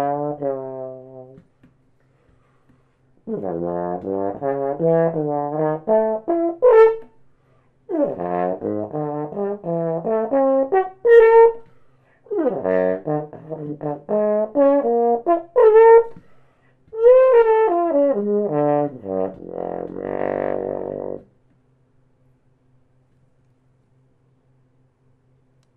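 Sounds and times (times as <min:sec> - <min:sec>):
solo trombone with plunger mute: 0:00.0 - 0:01.4, 0:03.3 - 0:07.1, 0:07.9 - 0:11.7, 0:12.3 - 0:16.2, 0:16.9 - 0:21.3.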